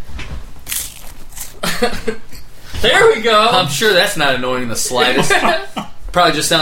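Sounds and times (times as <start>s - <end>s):
crunching while eating snack: 0.6s - 1.6s
speech: 1.6s - 6.6s
laughter: 4.7s - 6.0s.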